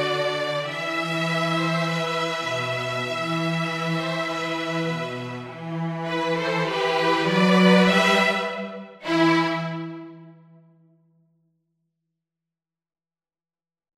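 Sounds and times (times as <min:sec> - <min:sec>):
string trio of two violins and cello playing a march: 0:00.0 - 0:10.5.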